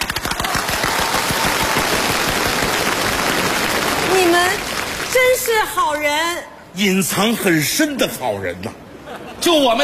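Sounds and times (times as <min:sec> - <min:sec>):
audience applause: 0:00.0 - 0:05.5
speech: 0:05.3 - 0:08.8, 0:09.4 - 0:09.8.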